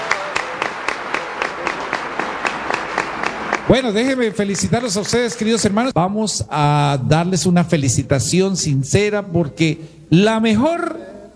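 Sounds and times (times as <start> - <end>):
audience applause: 0.0 - 5.9
speech: 3.7 - 11.0.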